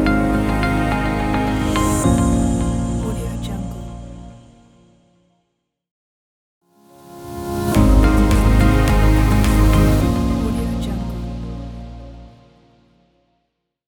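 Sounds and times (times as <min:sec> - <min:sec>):
motivational logo intro commercial music: 0:00.0 - 0:04.7, 0:06.8 - 0:13.1.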